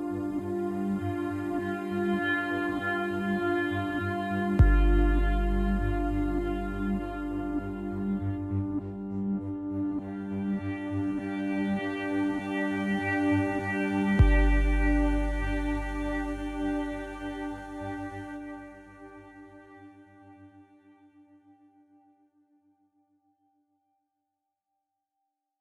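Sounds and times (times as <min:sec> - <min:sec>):
tense slow music: 0:00.0 - 0:20.0.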